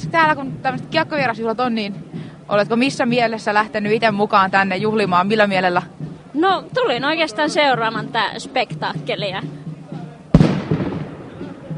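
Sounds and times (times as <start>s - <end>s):
speech: 0.1s - 9.6s
fireworks exploding at a hockey celebration: 10.3s - 11.7s.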